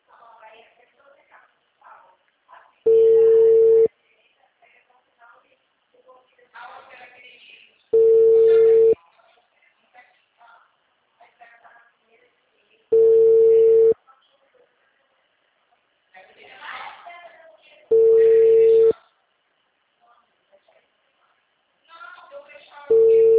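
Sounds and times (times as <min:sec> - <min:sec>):
people talking: 0:00.1 - 0:15.4, 0:16.1 - 0:19.2, 0:20.0 - 0:23.3
telephone busy tone after a dropped call: 0:02.9 - 0:03.9, 0:08.0 - 0:09.0, 0:12.9 - 0:14.0, 0:17.9 - 0:18.9, 0:22.9 - 0:23.3.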